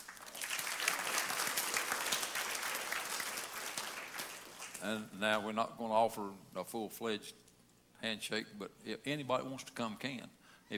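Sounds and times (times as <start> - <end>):
crowd applauding: 0.0 - 5.0
speech: 4.8 - 7.4, 8.0 - 10.7.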